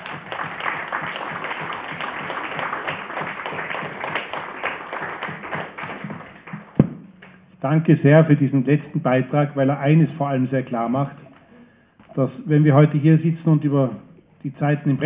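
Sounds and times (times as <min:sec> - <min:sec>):
audience applause: 0:00.0 - 0:06.8
sharp clap or knock: 0:00.0 - 0:07.4
speech: 0:07.6 - 0:11.2, 0:12.2 - 0:15.0.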